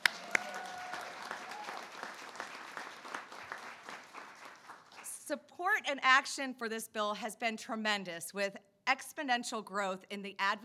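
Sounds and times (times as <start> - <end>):
audience applause: 0.0 - 5.1
speech: 5.3 - 10.6.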